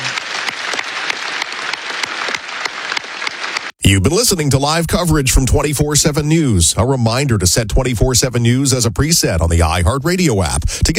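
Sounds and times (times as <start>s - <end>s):
audience applause: 0.0s - 3.8s
speech: 3.9s - 10.9s.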